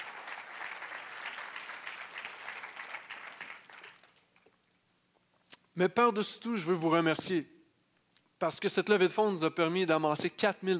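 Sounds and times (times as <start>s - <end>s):
audience applauding prize winners at a charity fundraiser: 0.0s - 4.4s
speech: 5.8s - 7.6s, 8.4s - 10.7s.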